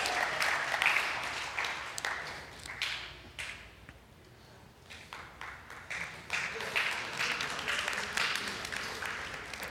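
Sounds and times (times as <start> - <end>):
audience applauding: 0.0 - 3.0, 5.1 - 9.6.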